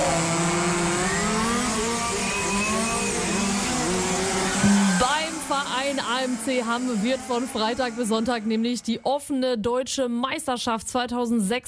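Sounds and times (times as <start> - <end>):
radio-controlled model cars' small electric motors whining: 0.0 - 9.2
speech: 6.2 - 11.6.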